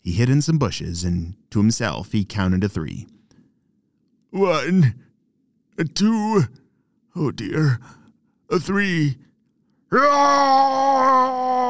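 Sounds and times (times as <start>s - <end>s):
speech: 0.0s - 3.2s, 4.3s - 5.0s, 5.8s - 6.6s, 7.2s - 9.3s, 9.9s - 11.6s
person imitating an abominable snowman roar: 10.0s - 11.6s.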